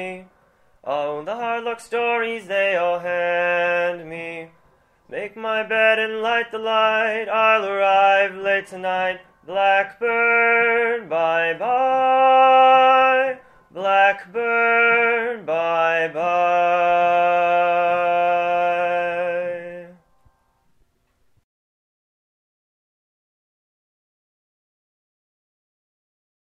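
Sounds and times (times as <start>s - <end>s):
person singing alone: 0.0s - 20.0s.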